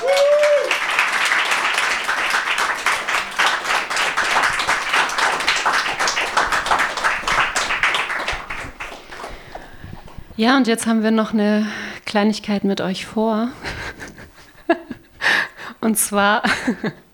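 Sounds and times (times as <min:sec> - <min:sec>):
audience applause: 0:00.0 - 0:09.9
speech: 0:10.4 - 0:13.7, 0:15.8 - 0:17.0.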